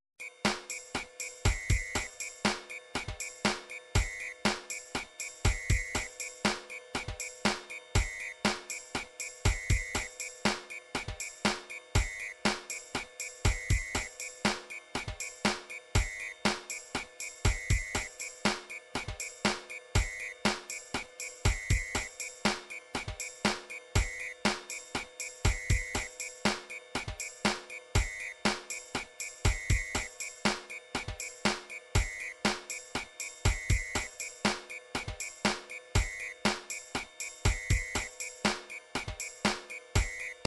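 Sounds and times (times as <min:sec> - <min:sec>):
drum pattern: 0:00.2 - 0:40.4.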